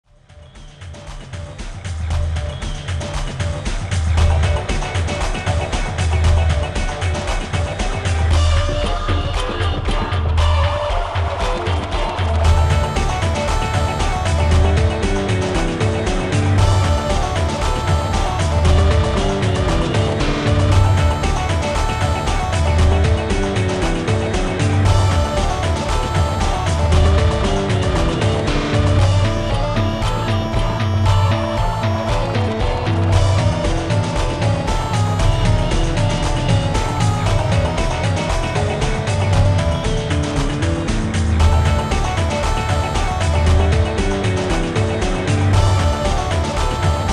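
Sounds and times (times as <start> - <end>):
bagpipe techno sketch: 0.2 - 47.1.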